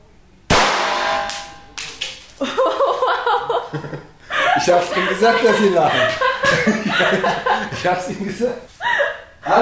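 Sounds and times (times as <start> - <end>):
gunshot: 0.5 - 1.7
laughter: 2.3 - 9.5
speech: 2.4 - 8.8.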